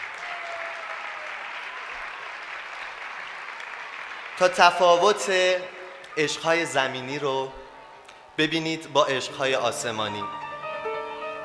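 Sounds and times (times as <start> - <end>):
audience applause: 0.0 - 6.2
speech: 4.4 - 7.6, 8.4 - 10.4.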